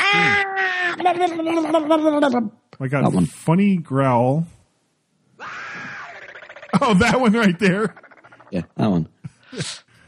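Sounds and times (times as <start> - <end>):
speech: 1.0 - 4.6, 6.8 - 9.9
loud sustained high-pitched scream sound effect: 5.4 - 6.4
laughter: 6.7 - 7.9.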